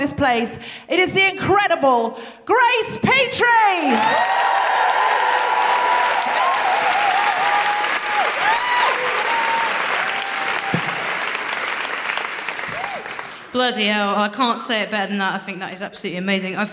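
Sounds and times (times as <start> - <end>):
speech: 0.0 - 5.5, 13.6 - 16.7
whoops and high cheers: 3.9 - 11.3, 12.5 - 13.3
large audience applause: 3.9 - 13.5.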